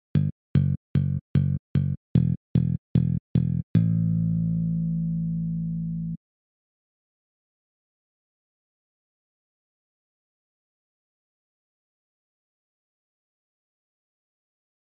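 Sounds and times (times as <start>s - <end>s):
bass: 0.0s - 6.2s.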